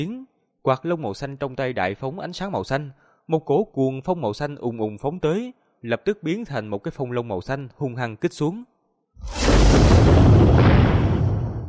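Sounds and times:
speech: 0.0s - 10.4s
series of loud explosions: 9.2s - 11.6s.

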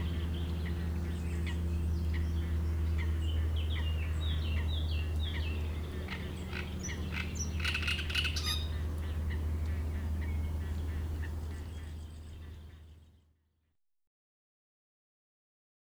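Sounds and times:
Great reed warbler singing in a reed bed: 0.0s - 13.1s.

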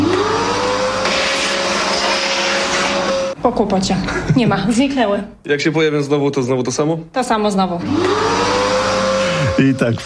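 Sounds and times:
vacuum cleaner running: 0.0s - 3.4s, 7.8s - 9.8s
speech: 3.4s - 8.3s, 9.6s - 10.0s.

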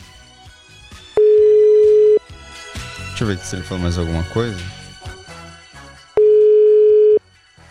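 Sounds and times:
telephone ringback tone of an unanswered outgoing call: 1.2s - 2.2s, 6.2s - 7.2s
speech: 3.2s - 4.8s.

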